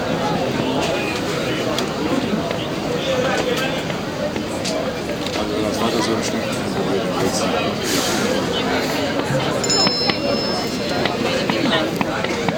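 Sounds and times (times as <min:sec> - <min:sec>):
airport hall ambience in Istanbul: 0:00.0 - 0:12.5.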